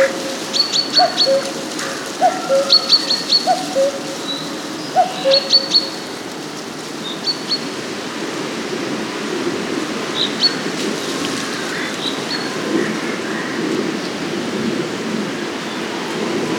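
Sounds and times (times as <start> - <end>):
common cuckoo calling in Vitrac: 0.0 - 6.1
wind in Vitrac: 0.0 - 16.5.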